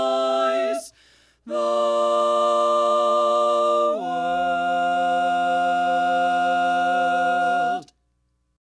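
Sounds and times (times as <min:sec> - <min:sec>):
harmonized lead: 0:01.5 - 0:07.9.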